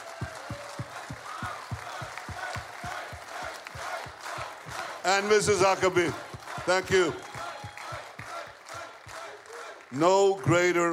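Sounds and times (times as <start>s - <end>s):
rhythmic low thumping: 0.0s - 8.6s
large crowd cheering and applauding: 0.0s - 10.9s
speech: 5.0s - 7.3s, 10.0s - 10.9s.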